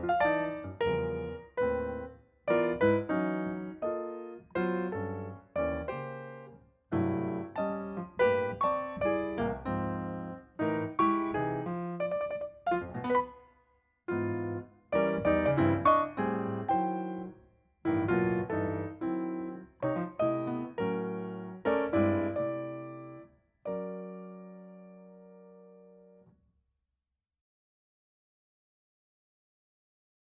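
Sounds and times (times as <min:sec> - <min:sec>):
piano improvisation: 0:00.0 - 0:26.2.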